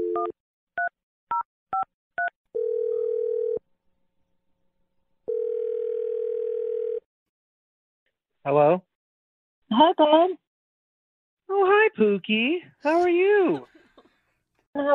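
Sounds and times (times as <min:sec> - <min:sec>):
telephone dial tone: 0:02.2 - 0:03.6, 0:05.3 - 0:07.0
speech: 0:08.4 - 0:08.9, 0:09.7 - 0:10.4, 0:11.5 - 0:13.8, 0:14.8 - 0:14.9.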